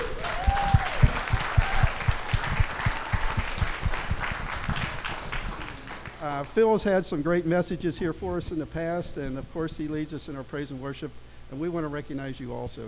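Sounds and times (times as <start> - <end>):
audience applause: 0.0 - 6.2
speech: 6.3 - 12.8.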